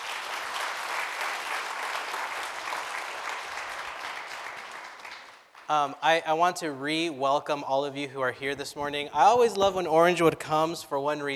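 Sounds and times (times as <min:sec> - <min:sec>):
audience applause for children's choir: 0:00.0 - 0:05.7
speech: 0:05.7 - 0:11.3.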